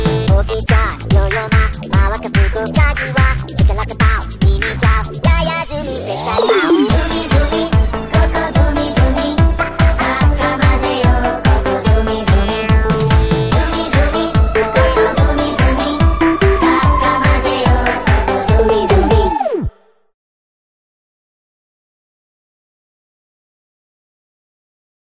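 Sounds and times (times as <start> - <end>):
instrumental karaoke backing track: 0.0 - 19.7.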